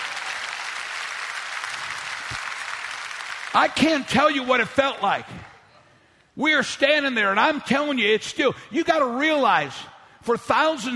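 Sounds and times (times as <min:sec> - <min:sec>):
audience clapping in applause: 0:00.0 - 0:05.0
speech: 0:03.5 - 0:05.5, 0:06.4 - 0:10.9.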